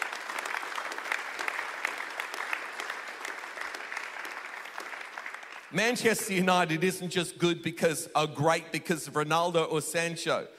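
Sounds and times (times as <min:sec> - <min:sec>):
audience applause: 0:00.0 - 0:06.4
speech: 0:05.7 - 0:10.5.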